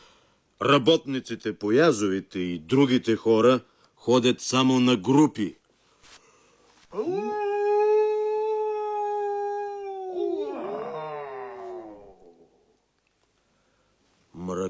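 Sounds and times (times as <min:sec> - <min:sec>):
speech: 0:00.6 - 0:05.6, 0:06.9 - 0:07.4, 0:14.5 - 0:14.6
werewolf howling in the valley: 0:06.9 - 0:12.8.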